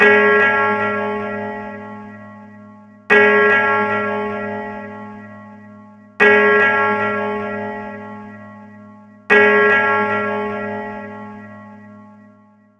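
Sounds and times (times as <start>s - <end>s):
bell: 0.0s - 12.7s.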